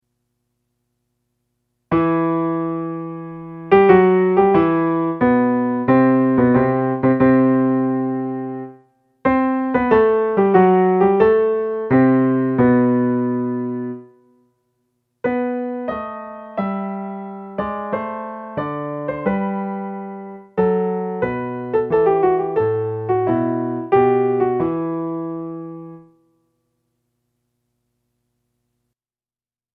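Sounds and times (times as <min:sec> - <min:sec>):
piano concerto: 0:02.0 - 0:14.1, 0:15.3 - 0:26.1.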